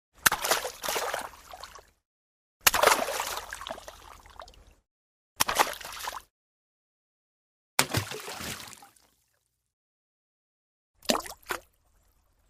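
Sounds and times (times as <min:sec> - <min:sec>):
fruit falling into water: 0:00.2 - 0:01.7, 0:02.6 - 0:04.5, 0:05.4 - 0:06.3, 0:07.8 - 0:09.2, 0:11.0 - 0:11.7.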